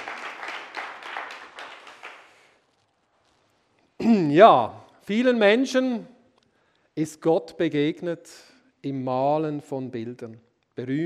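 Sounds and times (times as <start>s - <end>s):
audience applause: 0.0s - 2.6s
speech: 4.0s - 6.1s, 7.0s - 11.0s.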